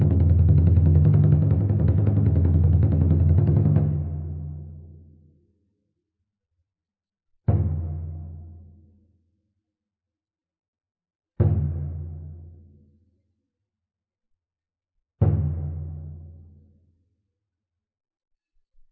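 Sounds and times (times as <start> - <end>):
drum beating: 0.0 - 4.6, 7.5 - 8.4, 15.2 - 16.2.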